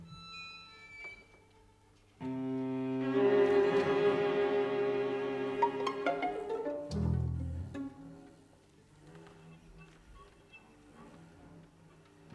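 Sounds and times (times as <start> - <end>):
orchestra playing: 2.2 - 8.2.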